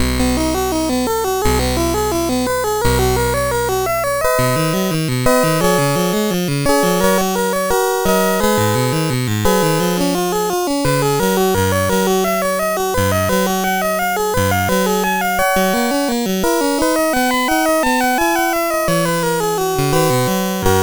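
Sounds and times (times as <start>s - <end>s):
prelude played on SID CSG8580R5 chip: 0.0s - 20.8s.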